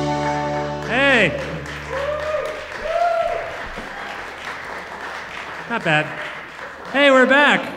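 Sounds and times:
audience applause: 0:00.2 - 0:07.7
whooping cheers: 0:01.1 - 0:04.3
speech: 0:05.8 - 0:06.3, 0:07.0 - 0:07.7.

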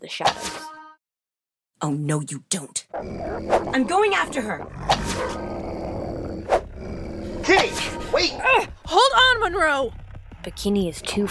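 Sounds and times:
speech: 0:00.0 - 0:00.7, 0:01.8 - 0:05.6, 0:07.4 - 0:11.2
hound growling: 0:02.9 - 0:08.9
hounds barking: 0:05.1 - 0:05.4.

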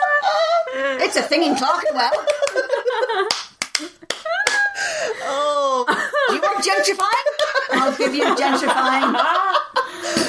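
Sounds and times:
laughter: 0:00.0 - 0:10.2
speech: 0:00.8 - 0:03.9, 0:05.8 - 0:10.2
hand clap: 0:02.2 - 0:04.7, 0:06.9 - 0:07.7.

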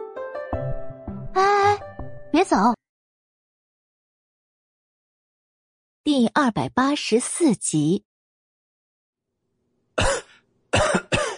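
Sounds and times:
speech: 0:01.3 - 0:01.6, 0:02.4 - 0:02.8, 0:06.2 - 0:08.1
violent coughing: 0:10.0 - 0:11.3.

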